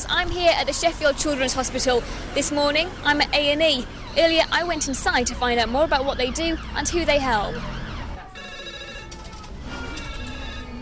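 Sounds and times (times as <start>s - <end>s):
speech: 0.0s - 7.8s
telephone ringing: 8.3s - 10.8s.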